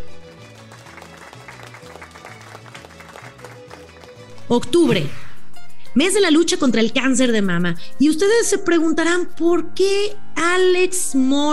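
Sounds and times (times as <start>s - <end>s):
applause: 0.0s - 4.4s
speech: 4.5s - 5.2s, 6.0s - 11.5s.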